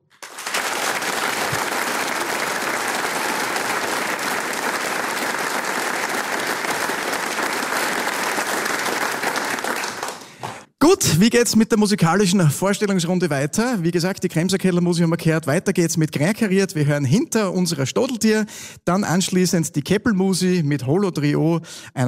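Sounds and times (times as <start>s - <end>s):
audience applause in the Arbeiterheimsaal in Vonsdorf: 0.0s - 10.8s
speech: 10.9s - 22.0s.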